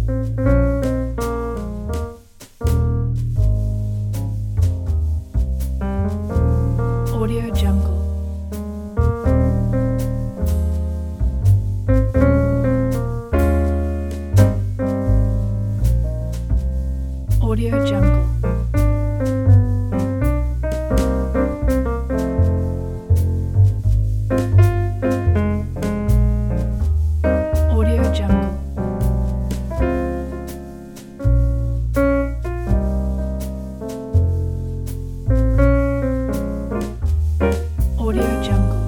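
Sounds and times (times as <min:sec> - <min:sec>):
luxury lounge jazz music: 0:00.0 - 0:38.8.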